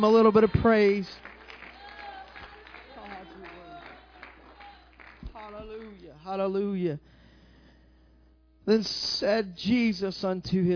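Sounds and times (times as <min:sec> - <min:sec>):
speech: 0:00.0 - 0:01.3, 0:05.6 - 0:07.1, 0:08.7 - 0:10.7
audience clapping hands: 0:00.6 - 0:06.2.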